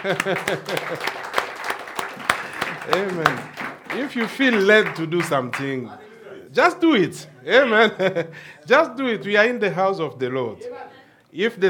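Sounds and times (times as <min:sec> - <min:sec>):
speech: 0:00.0 - 0:01.2, 0:02.9 - 0:11.6
laughter: 0:00.0 - 0:05.7, 0:07.5 - 0:09.0
church congregation clapping: 0:00.0 - 0:05.9.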